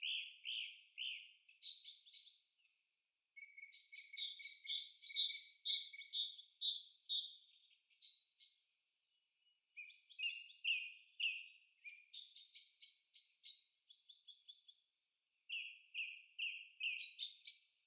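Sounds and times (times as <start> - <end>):
forest sounds: 0.0 - 17.8.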